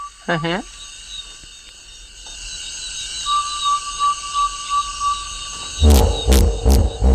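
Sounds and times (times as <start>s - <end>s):
night chorus of frogs: 0.0s - 7.1s
night chorus of insects: 0.0s - 7.1s
hippopotamus grunting: 5.8s - 7.1s
sliding trombone-like call: 5.8s - 7.1s.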